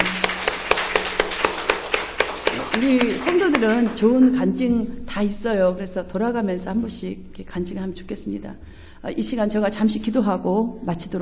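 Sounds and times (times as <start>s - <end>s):
audience applauding: 0.0s - 4.0s
speech: 2.8s - 11.2s.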